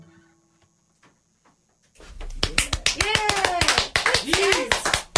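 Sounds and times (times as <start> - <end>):
people clapping hands: 2.0 - 5.1.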